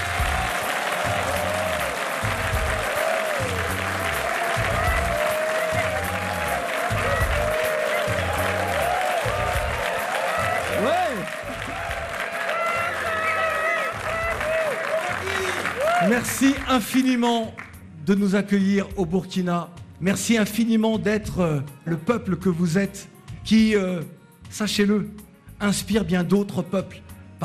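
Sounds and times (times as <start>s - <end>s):
live audience applause welcoming a show's team in Burkina Faso: 0.0s - 17.1s
speech: 16.3s - 27.4s.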